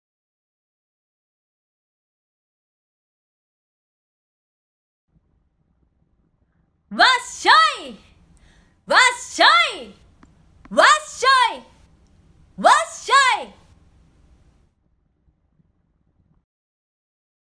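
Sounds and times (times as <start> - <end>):
voice: 6.9 - 8.0, 8.9 - 10.0, 10.7 - 11.7, 12.6 - 13.6.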